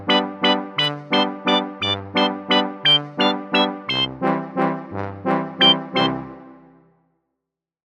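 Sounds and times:
slapstick comedy sounds: 0.1s - 4.1s, 5.6s - 6.2s.

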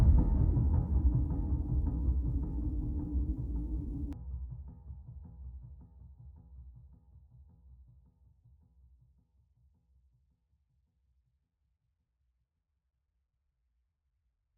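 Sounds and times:
tense sound effect: 0.0s - 4.2s.

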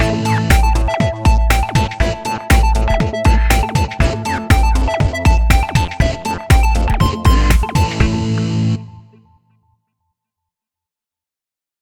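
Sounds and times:
electronic music: 0.0s - 9.2s.

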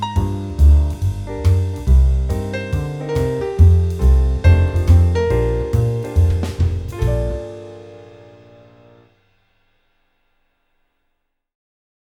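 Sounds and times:
jazz music: 0.0s - 9.1s.

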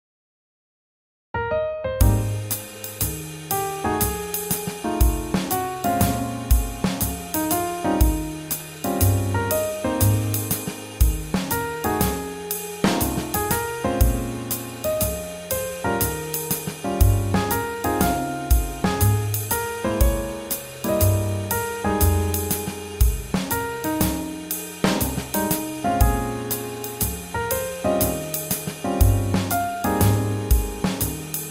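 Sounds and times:
swing jazz: 2.0s - 31.4s.

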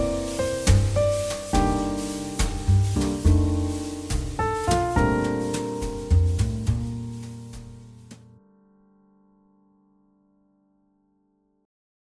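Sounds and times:
jazz ballad: 0.0s - 8.4s.

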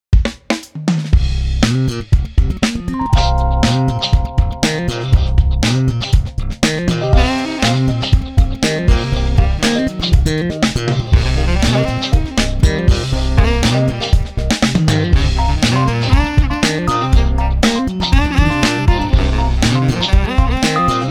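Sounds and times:
jazz funk music: 1.2s - 21.0s.

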